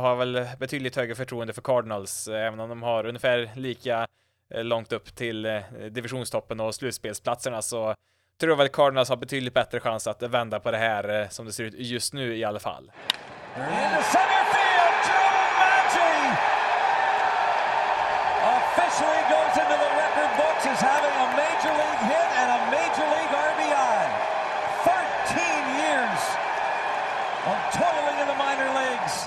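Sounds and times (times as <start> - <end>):
speech: 0.0 - 14.4, 20.6 - 23.2
baseball home crowd cheering loudly: 13.0 - 29.2.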